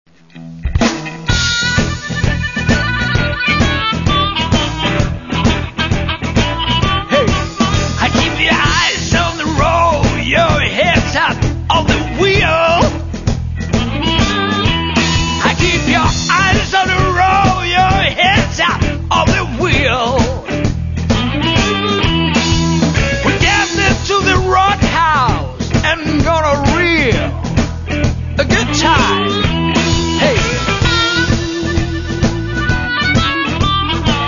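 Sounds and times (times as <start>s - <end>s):
blues music: 0.1s - 34.2s.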